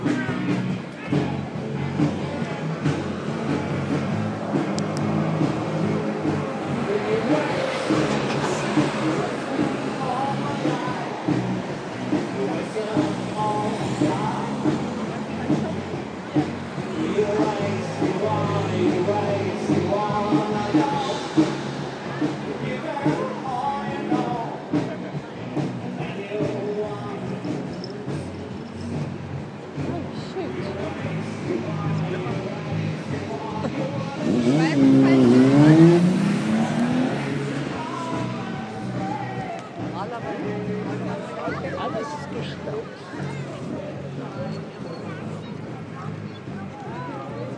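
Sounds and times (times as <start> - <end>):
live music at Stadtfest: 0.0 - 47.4.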